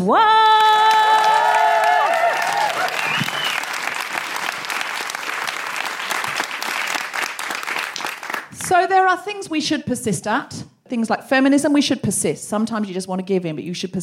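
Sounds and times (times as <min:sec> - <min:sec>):
speech: 0:00.0 - 0:00.4, 0:08.9 - 0:14.0
audience applause welcoming a comedian to the stage at a comedy show: 0:00.6 - 0:08.7.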